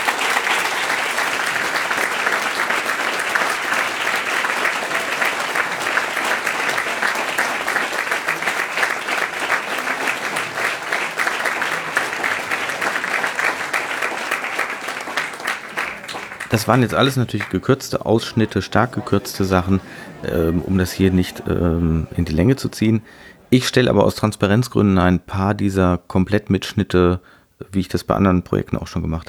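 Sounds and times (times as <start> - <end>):
audience applause: 0.0 - 24.0
laughter: 0.0 - 24.5
speech: 16.6 - 29.2.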